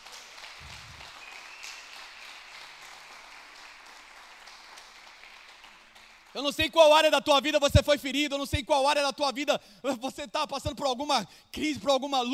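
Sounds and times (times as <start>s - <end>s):
audience applause: 0.0s - 6.4s
speech: 6.3s - 12.3s.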